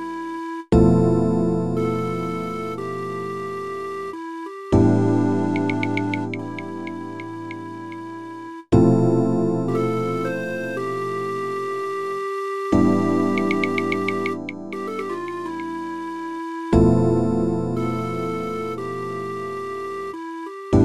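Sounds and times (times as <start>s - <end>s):
flute melody: 0.0s - 8.8s, 9.7s - 20.8s.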